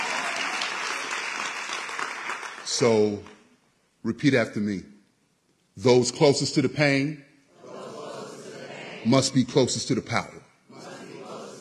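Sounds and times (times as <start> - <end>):
audience applause during a speech by a Chicago community organizer: 0.0 - 3.0
speech: 2.7 - 3.3, 4.0 - 4.9, 5.8 - 7.3, 9.0 - 10.4.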